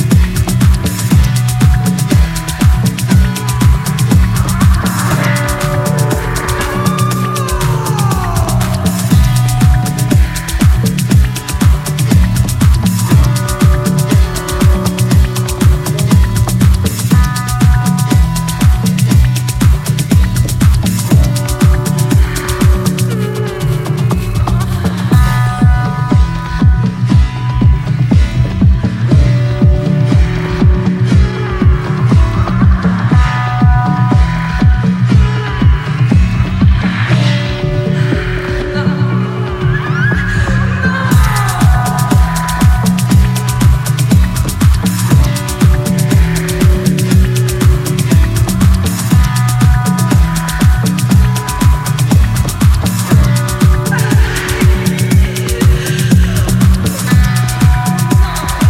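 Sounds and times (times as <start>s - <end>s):
Afro club mix: 0.0s - 58.6s.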